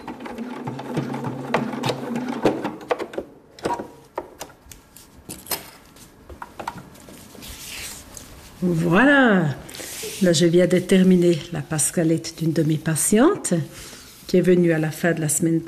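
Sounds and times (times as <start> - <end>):
sewing machine in a hairdressing salon stitching a hair prosthesis: 0.0 - 2.9
speech: 8.6 - 9.6, 10.2 - 15.6.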